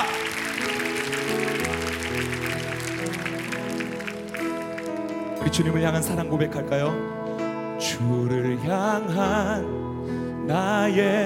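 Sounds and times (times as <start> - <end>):
audience applause: 0.0 - 5.4
speech: 5.5 - 7.2, 7.8 - 11.2.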